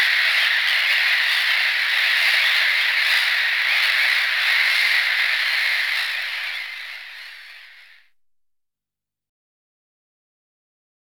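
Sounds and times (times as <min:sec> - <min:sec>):
black-headed gull screeching and rasping calls: 0:00.0 - 0:08.0.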